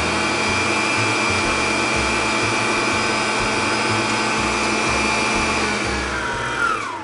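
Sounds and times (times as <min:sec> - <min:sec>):
electric mixer whipping eggs and sugar to firm peaks: 0:00.0 - 0:07.0.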